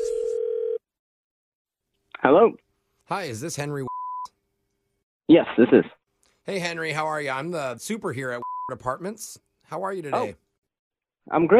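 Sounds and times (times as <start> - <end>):
telephone line tone as call connects: 0.0 - 0.8
speech: 2.2 - 3.9, 5.3 - 10.4, 11.2 - 11.5.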